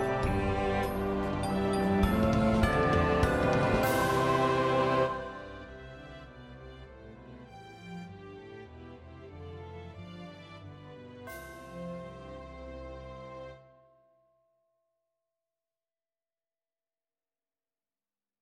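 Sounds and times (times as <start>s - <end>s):
cello melody: 0.0s - 11.2s.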